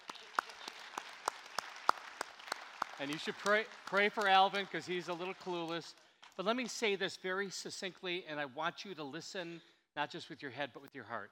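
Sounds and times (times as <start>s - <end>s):
small audience applause: 0.0s - 5.9s
speech: 3.0s - 11.3s.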